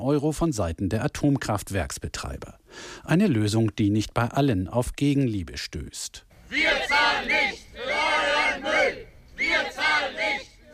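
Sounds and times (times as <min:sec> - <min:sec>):
speech: 0:00.0 - 0:08.0
protesters chanting outside the German Federal Ministry for Economic Affairs: 0:06.5 - 0:10.7.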